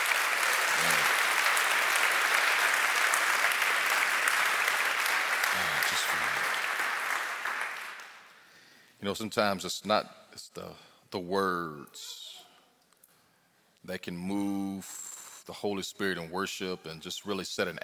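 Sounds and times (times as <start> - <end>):
audience applause: 0.0 - 8.2
speech: 9.0 - 12.3, 13.8 - 17.8.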